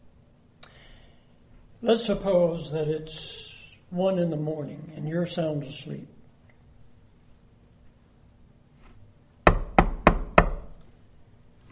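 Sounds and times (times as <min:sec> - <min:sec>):
speech: 0:01.8 - 0:06.2
knocking at a door: 0:09.4 - 0:10.8.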